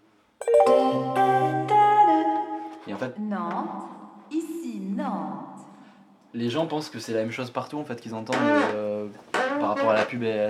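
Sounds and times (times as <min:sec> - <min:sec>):
train station announcement chime: 0:00.4 - 0:02.8
speech: 0:02.9 - 0:05.5, 0:06.3 - 0:10.4.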